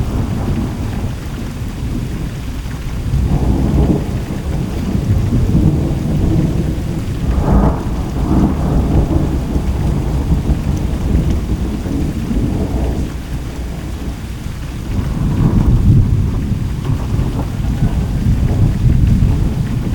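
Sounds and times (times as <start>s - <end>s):
thunder: 0.0s - 19.9s.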